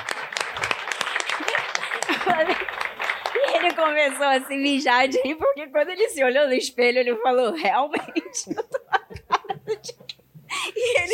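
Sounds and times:
round of applause: 0:00.0 - 0:04.7
laughter: 0:01.2 - 0:03.8, 0:07.9 - 0:11.1
speech: 0:02.3 - 0:02.8, 0:03.6 - 0:08.7.

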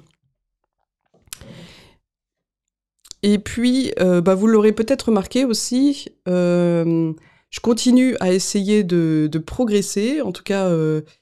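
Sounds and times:
person taking a small sip of drink: 0:01.2 - 0:01.7
speech: 0:03.2 - 0:11.1.

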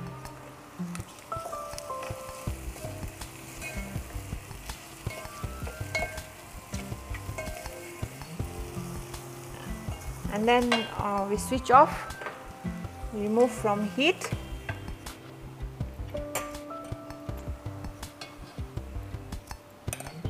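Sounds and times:
food sizzling in a hot pan: 0:00.0 - 0:20.2
speech: 0:10.4 - 0:12.1, 0:13.2 - 0:14.4.

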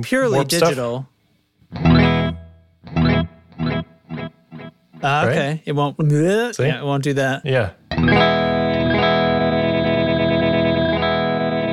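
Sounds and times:
speech: 0:00.0 - 0:01.1, 0:05.0 - 0:08.5
chord through a digital delay with chopped glitching repeats: 0:01.8 - 0:04.8, 0:07.9 - 0:11.7.

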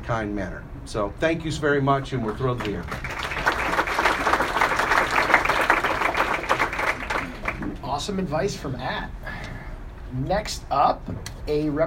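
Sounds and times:
speech: 0:00.1 - 0:03.2, 0:08.0 - 0:09.2, 0:10.1 - 0:11.8
audience clapping: 0:02.2 - 0:07.8.

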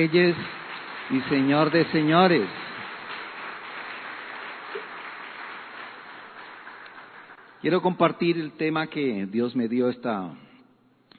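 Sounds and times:
speech: 0:00.0 - 0:02.6, 0:07.6 - 0:10.5
audience applause: 0:00.0 - 0:07.7.

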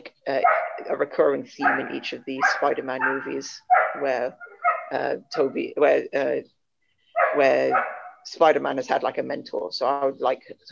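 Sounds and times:
speech: 0:00.3 - 0:06.6, 0:07.3 - 0:10.7
dog barking and yelping: 0:00.4 - 0:00.9, 0:01.6 - 0:05.0, 0:07.1 - 0:08.3.

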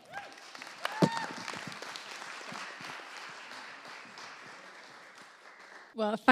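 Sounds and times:
audience applause welcoming a speaker at a talk series on compassion: 0:00.0 - 0:06.0.

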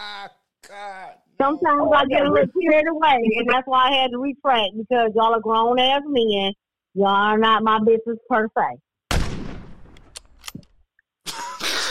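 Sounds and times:
speech: 0:00.2 - 0:08.9
gunshot sound effect: 0:09.1 - 0:10.2
sharp clicks: 0:09.9 - 0:10.8.

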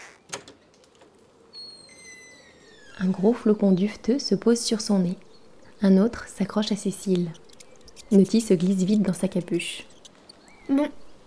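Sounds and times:
door latch click: 0:00.3 - 0:00.6
door squealing as it swings: 0:01.6 - 0:03.2
speech: 0:03.0 - 0:07.4, 0:08.1 - 0:09.9, 0:10.7 - 0:11.0.

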